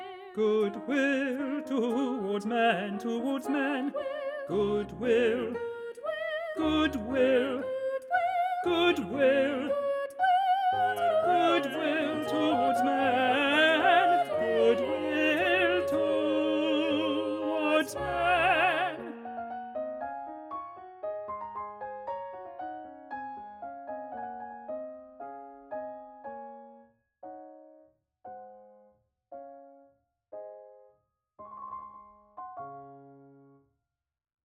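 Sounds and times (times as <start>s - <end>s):
tenor voice singing: 0.0s - 19.2s.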